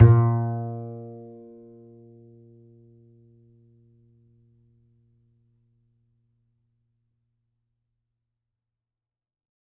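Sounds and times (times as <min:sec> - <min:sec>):
upright acoustic bass played in first position: 0:00.0 - 0:01.6.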